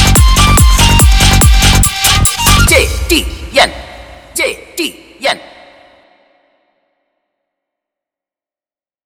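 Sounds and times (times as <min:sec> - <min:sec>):
beat mix: 0:00.0 - 0:05.6.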